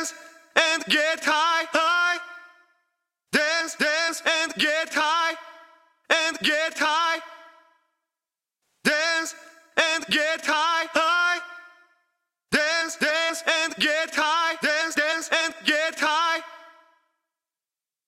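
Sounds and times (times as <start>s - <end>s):
a cappella deep house vocals: 0.0s - 2.6s, 3.3s - 7.6s, 8.8s - 11.8s, 12.5s - 16.9s.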